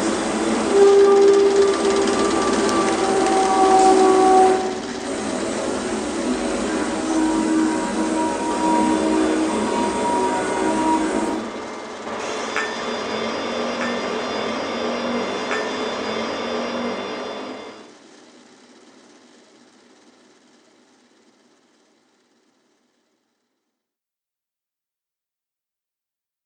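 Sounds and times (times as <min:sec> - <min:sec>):
soundscape: 0:00.0 - 0:17.9.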